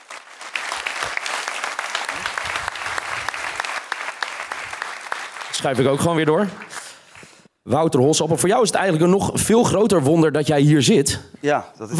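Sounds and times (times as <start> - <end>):
audience applause: 0.0 - 7.2
speech: 5.6 - 6.8, 7.7 - 11.9.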